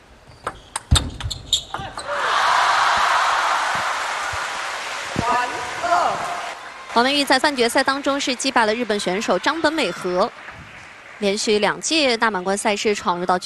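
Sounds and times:
table tennis ball bouncing before a serve in a women's singles final: 0.4s - 2.1s
crowd noise: 1.7s - 13.4s
speech: 7.0s - 10.5s, 11.2s - 13.4s.

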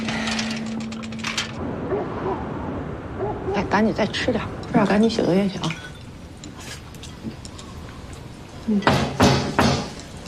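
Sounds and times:
faint hum: 0.0s - 10.2s
speech: 3.6s - 5.8s, 8.7s - 9.1s
knocking on a door: 8.9s - 9.9s.

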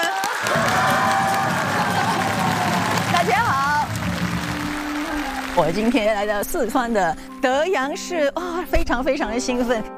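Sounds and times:
audience applause: 0.0s - 6.4s
speech: 5.6s - 9.9s.

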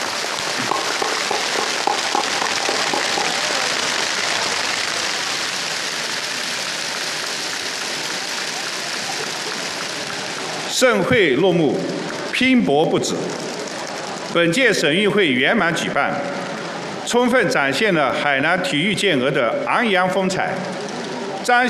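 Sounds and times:
warm audience applause: 0.0s - 12.4s
speech: 10.8s - 13.6s, 14.3s - 16.4s, 17.1s - 20.8s, 21.4s - 21.6s.

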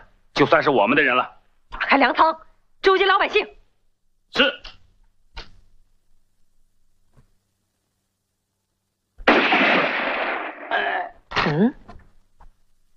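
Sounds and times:
speech: 0.4s - 3.6s, 4.3s - 4.7s, 11.5s - 11.8s
gunshot: 9.2s - 11.0s.

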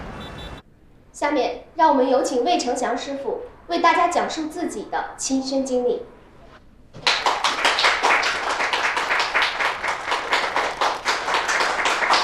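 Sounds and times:
speech: 1.2s - 6.1s
audience clapping: 7.0s - 12.2s.

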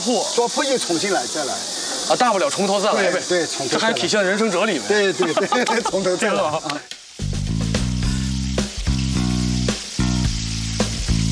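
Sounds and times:
speech: 0.0s - 7.0s
dumplings frying in an oil pan: 0.0s - 11.3s
laughter: 3.8s - 6.9s.

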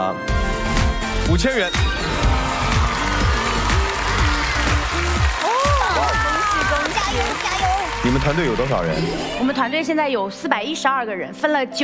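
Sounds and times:
speech: 0.0s - 0.3s, 1.3s - 2.4s, 8.1s - 11.8s
audience applause: 1.9s - 9.5s.

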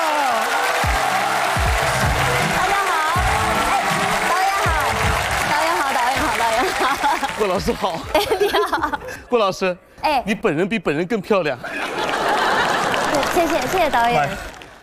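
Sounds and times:
applause welcoming lead actress on film set: 0.0s - 8.0s, 11.9s - 14.8s
laughter: 6.3s - 9.3s, 11.6s - 13.6s
speech: 7.4s - 11.8s, 13.4s - 14.5s.

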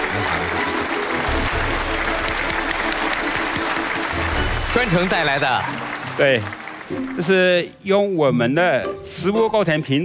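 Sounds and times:
audience applause: 0.0s - 7.6s
speech: 4.7s - 10.0s.

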